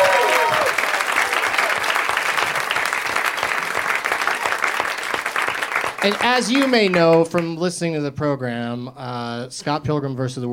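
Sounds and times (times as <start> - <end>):
audience applause: 0.0 - 7.5
speech: 6.0 - 10.5.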